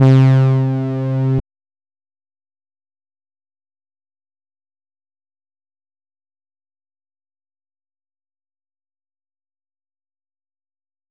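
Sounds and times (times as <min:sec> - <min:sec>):
synth: 0:00.0 - 0:01.4.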